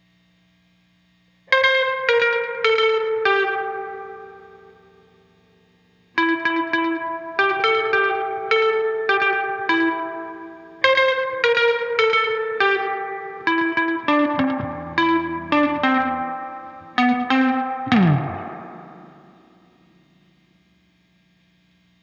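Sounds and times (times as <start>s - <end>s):
guitar overdub: 1.4s - 20.3s.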